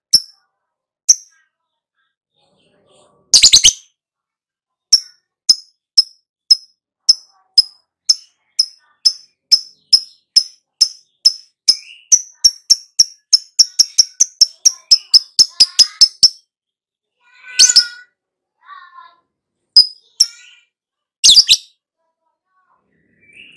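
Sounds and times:
lovebird shrieking and chirping: 3.3 - 3.9, 4.9 - 16.5, 17.4 - 18.0, 21.2 - 21.8, 22.9 - 23.5.

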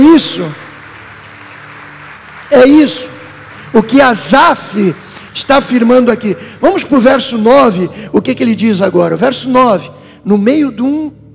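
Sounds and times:
audience applauding: 0.0 - 7.9
speech: 0.2 - 0.6, 2.5 - 11.2.

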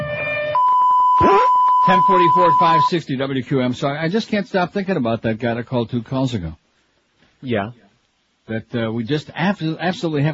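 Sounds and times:
siren-like electronic sound with piercing high tone and swooping pitch sweep: 0.3 - 2.9
speech: 1.9 - 6.6, 7.4 - 7.8, 8.5 - 10.3.

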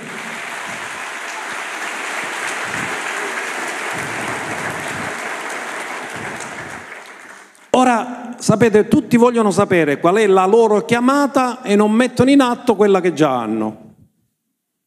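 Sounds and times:
applause: 0.0 - 8.0
speech: 7.8 - 13.8.

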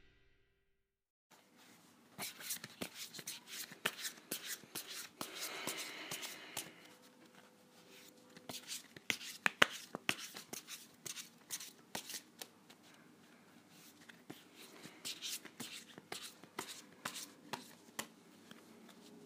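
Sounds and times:
tarot cards being shuffled: 2.2 - 6.9, 7.9 - 12.8, 13.9 - 19.1.

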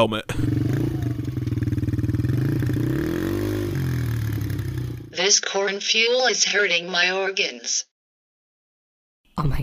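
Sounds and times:
speech: 0.0 - 0.6, 5.2 - 7.9
ATV engine idling and revving: 0.0 - 5.2.

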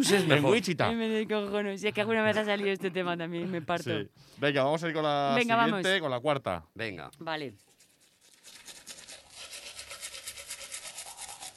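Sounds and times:
speech: 0.0 - 7.7
person brushing teeth with a toothbrush: 7.5 - 11.5.

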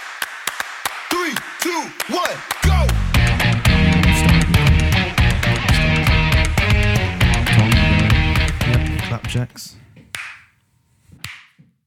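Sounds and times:
sync clap for recording alignment: 0.0 - 9.1
speech: 1.6 - 2.7, 9.1 - 9.8.

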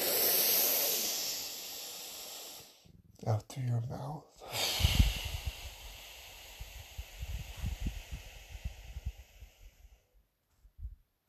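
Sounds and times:
deep breath drawn in through the nose during a guided relaxation breathing exercise: 0.0 - 2.9, 4.4 - 10.2
speech: 3.2 - 5.0.

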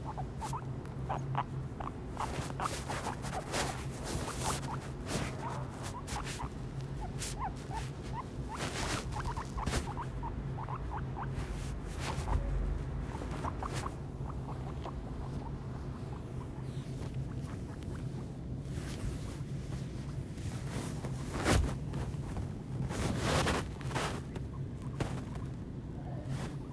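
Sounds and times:
guinea pig squeaking: 0.0 - 18.4
faint rustling: 0.0 - 26.7
low hum: 0.0 - 26.7.

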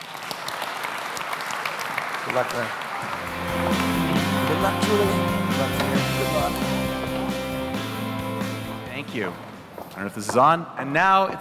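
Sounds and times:
audience applause: 0.0 - 8.8
speech: 2.3 - 3.8, 4.5 - 6.9, 9.0 - 11.3.

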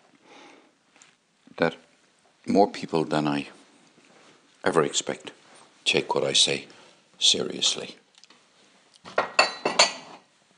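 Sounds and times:
speech: 1.6 - 3.6, 4.6 - 8.0
cup clinking as it is put away: 9.1 - 10.3.

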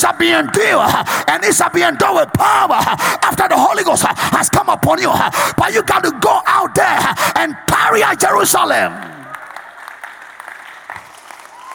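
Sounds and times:
speech: 0.0 - 9.2
audience clapping: 8.4 - 11.7.

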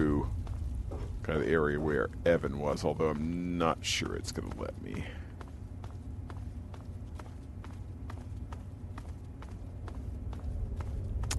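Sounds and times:
low rumble: 0.0 - 11.3
video game character footsteps: 0.0 - 11.3
speech: 1.3 - 5.2.

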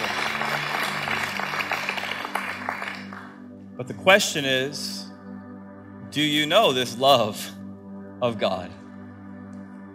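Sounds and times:
audience clapping: 0.0 - 3.5
speech: 3.8 - 5.1, 6.1 - 7.6, 8.2 - 8.8.

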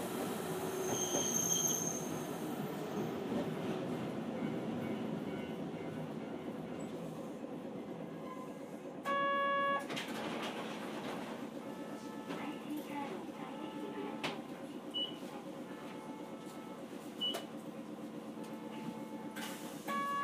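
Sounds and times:
Hankai Tramway tram running in Osaka: 0.0 - 20.2.

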